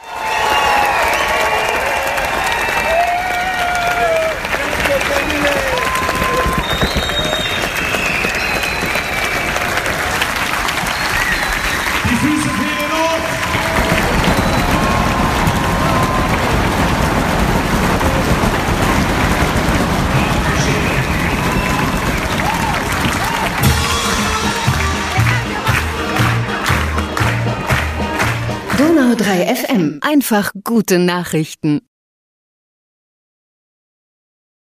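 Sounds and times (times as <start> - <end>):
enthusiastic circus audience applause at gala premiere finale: 0.0 - 29.6
speech: 29.5 - 31.9.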